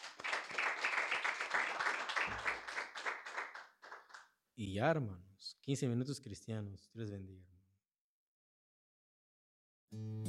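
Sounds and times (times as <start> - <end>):
audience clapping: 0.0 - 4.3
speech: 4.6 - 7.5, 9.9 - 10.2.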